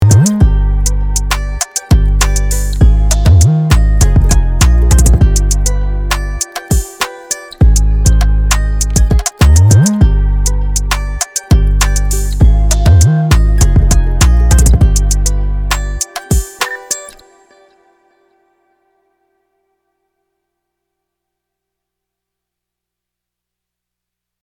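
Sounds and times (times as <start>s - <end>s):
closed drum beat: 0.0s - 5.7s, 6.4s - 10.1s, 10.8s - 16.9s.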